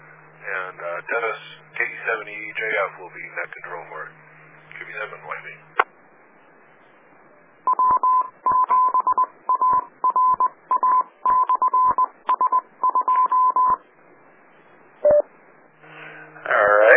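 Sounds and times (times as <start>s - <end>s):
speech: 0.7s - 1.6s, 2.2s - 4.2s, 4.9s - 5.8s
DTMF touch-tone beeps dialing an autopatch call: 7.7s - 13.8s, 15.0s - 15.2s.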